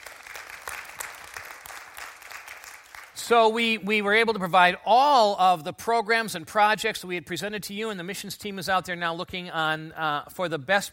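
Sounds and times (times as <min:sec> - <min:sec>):
audience applause: 0:00.0 - 0:03.2
speech: 0:03.3 - 0:10.9.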